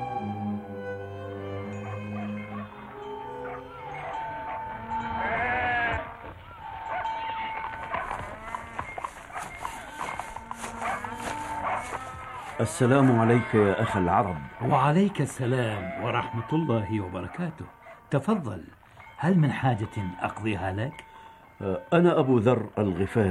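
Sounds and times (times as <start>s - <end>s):
flock of sheep bleating: 5.0s - 6.2s, 6.8s - 18.2s
speech: 12.6s - 23.2s.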